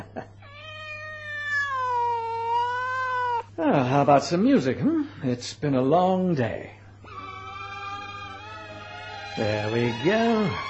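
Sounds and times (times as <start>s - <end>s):
faint steady hum: 0.0s - 10.6s
cat meowing: 0.4s - 3.5s, 7.1s - 10.0s
speech: 3.9s - 6.8s, 9.4s - 10.6s.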